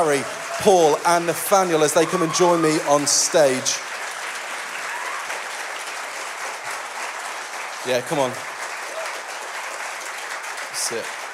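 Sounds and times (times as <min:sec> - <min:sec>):
speech: 0:00.0 - 0:03.9, 0:07.8 - 0:08.5, 0:10.9 - 0:11.2
round of applause: 0:00.0 - 0:11.3.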